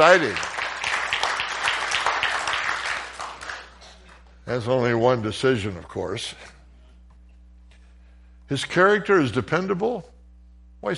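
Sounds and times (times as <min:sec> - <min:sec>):
speech: 0:00.0 - 0:00.5, 0:04.5 - 0:06.5, 0:08.5 - 0:10.1, 0:10.8 - 0:10.9
audience cheering and applauding: 0:00.0 - 0:03.8.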